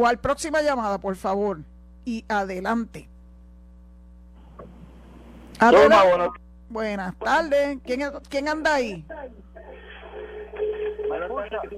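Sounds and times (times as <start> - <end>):
speech: 0.0 - 3.1, 5.6 - 9.8, 11.1 - 11.7
caller's radio playing over telephone line: 5.6 - 6.4, 7.2 - 11.7.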